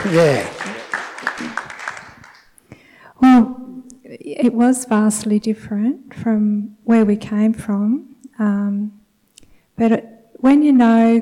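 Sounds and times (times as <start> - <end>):
speech: 0.0 - 0.6, 4.4 - 9.0, 9.8 - 11.2
small audience scattered clapping: 0.0 - 2.6.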